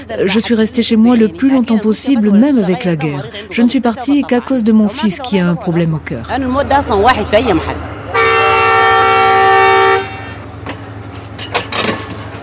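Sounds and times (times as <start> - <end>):
speech: 0.1 - 8.0
train horn blaring: 7.9 - 10.5.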